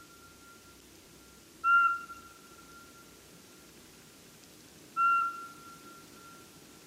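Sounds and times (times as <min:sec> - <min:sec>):
faint hissing background: 0:00.0 - 0:06.8
pygmy owl whistling call: 0:01.6 - 0:03.0, 0:05.0 - 0:06.5.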